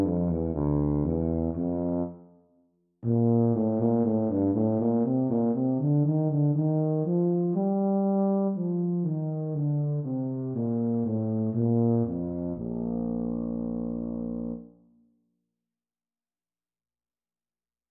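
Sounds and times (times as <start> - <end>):
B-flat tuba duet practice: 0.0 - 2.2, 3.0 - 14.7.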